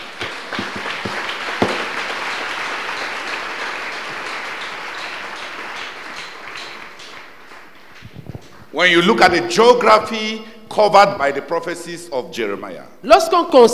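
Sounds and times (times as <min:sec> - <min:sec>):
audience applause: 0:00.0 - 0:08.8
speech: 0:08.8 - 0:13.7.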